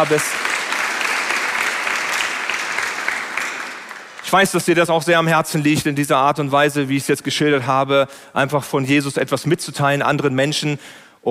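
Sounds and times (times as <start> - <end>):
speech: 0.0 - 0.5, 4.3 - 11.2
audience applause: 0.0 - 4.8.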